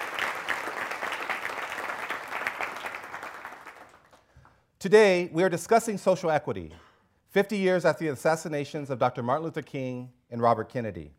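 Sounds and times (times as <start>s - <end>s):
audience applause: 0.0s - 4.2s
speech: 4.8s - 11.1s.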